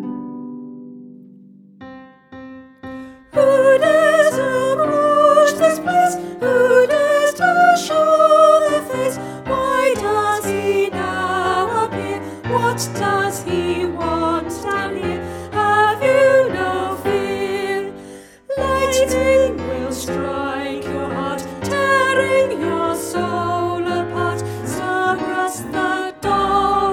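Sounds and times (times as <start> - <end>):
choir singing: 3.3 - 26.9.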